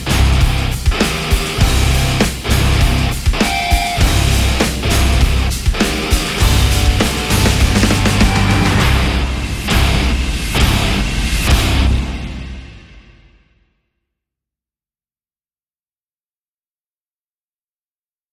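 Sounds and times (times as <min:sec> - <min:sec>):
guitar: 0:00.0 - 0:13.4
drums: 0:00.0 - 0:13.6.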